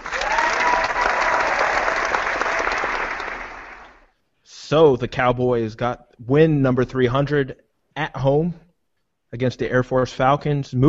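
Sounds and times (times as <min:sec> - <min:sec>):
crowd applause: 0:00.0 - 0:04.1
speech: 0:04.7 - 0:08.6, 0:09.3 - 0:10.8.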